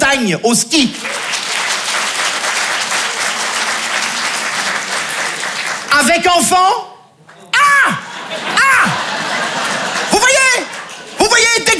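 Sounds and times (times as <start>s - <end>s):
speech: 0.2s - 1.5s, 6.0s - 6.9s
live audience applause: 1.0s - 6.1s, 8.2s - 11.3s
laughter: 7.6s - 11.6s.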